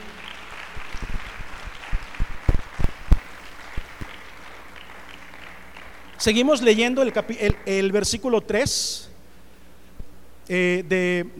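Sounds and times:
scattered applause: 0.0 - 7.9
steady hiss: 0.0 - 11.3
speech: 6.2 - 9.1, 10.5 - 11.3.

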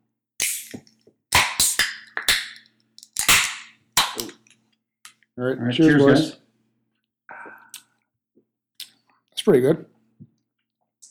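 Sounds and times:
cider cans cracking open and fizzing: 0.4 - 5.2
speech: 5.4 - 6.4, 9.5 - 9.9.

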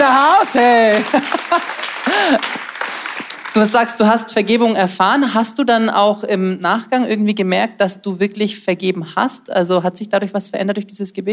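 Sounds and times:
crowd clapping: 0.0 - 4.2
laughter: 0.4 - 3.4
speech: 0.5 - 2.6, 3.6 - 11.3.

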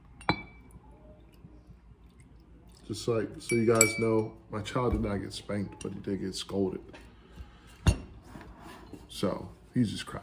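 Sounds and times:
glass clinking against glass: 0.0 - 0.8, 3.4 - 4.4
speech: 2.9 - 7.1, 9.2 - 10.2.

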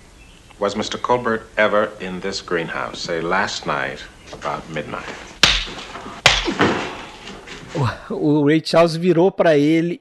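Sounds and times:
speech: 0.6 - 5.8, 7.8 - 9.9
slaps in a film scene: 5.4 - 7.3.

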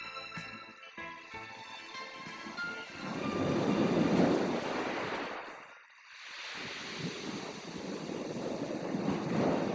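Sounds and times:
ocean waves at the seashore: 0.0 - 9.7.

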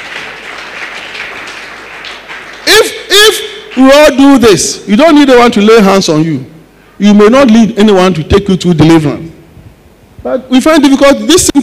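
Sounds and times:
audience clapping: 0.0 - 4.2
speech: 3.8 - 9.3, 10.2 - 11.6.

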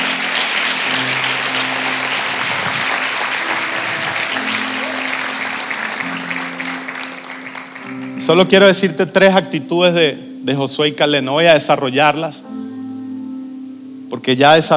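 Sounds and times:
organ-like droning tones: 0.0 - 8.2
audience applauding loudly: 0.0 - 8.4
speech: 8.2 - 12.6, 14.1 - 14.7.

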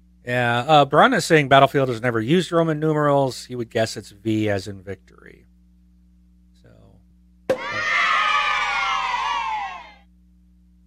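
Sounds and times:
speech: 0.2 - 5.4
cheering: 7.5 - 10.0.

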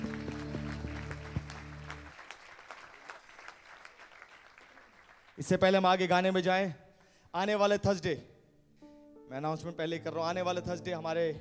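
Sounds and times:
audience clapping: 0.0 - 5.7
speech: 5.4 - 8.3, 9.3 - 11.3.

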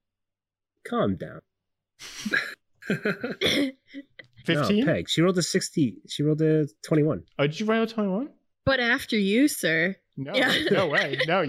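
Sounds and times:
speech: 0.9 - 11.4
laughter: 2.2 - 3.7, 10.4 - 11.4
person coughing: 2.2 - 3.8.

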